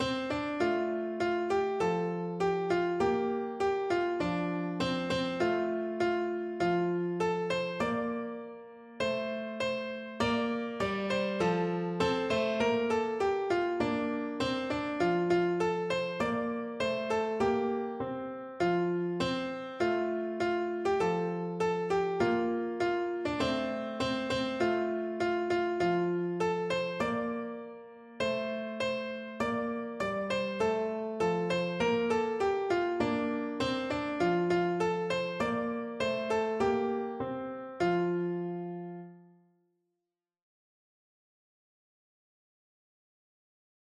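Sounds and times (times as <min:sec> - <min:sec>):
piano: 0:00.0 - 0:39.6.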